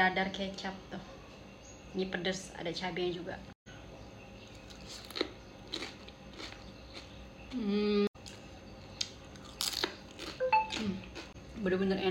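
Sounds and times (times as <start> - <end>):
speech: 0.0 - 1.2, 1.9 - 3.6, 7.5 - 8.1, 11.6 - 12.0
coriander crisps bitten into and crunching: 4.5 - 7.1, 8.2 - 11.3.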